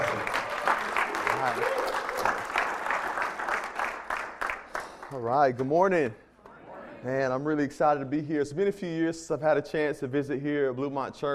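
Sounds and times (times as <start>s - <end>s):
large audience applause welcoming a speaker: 0.0s - 5.2s
faint voices and cheers: 1.2s - 2.3s
speech: 5.2s - 6.2s, 7.0s - 11.3s.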